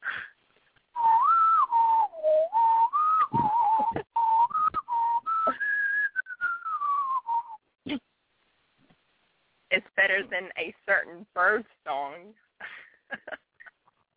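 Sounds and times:
person whistling a game show theme tune: 1.0 - 7.6
speech: 10.3 - 12.4.

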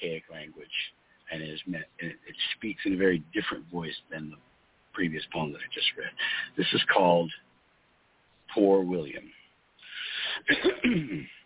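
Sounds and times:
speech: 2.9 - 4.4, 5.0 - 7.4, 8.5 - 9.3, 10.4 - 11.4
man clearing throat: 10.2 - 11.4.

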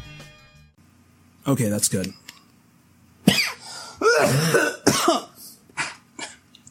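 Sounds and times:
speech: 1.5 - 2.2
coughing: 3.2 - 6.5.

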